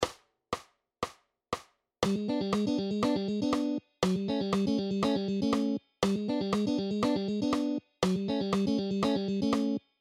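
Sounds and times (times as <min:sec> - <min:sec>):
double stops playing: 0:02.0 - 0:09.8.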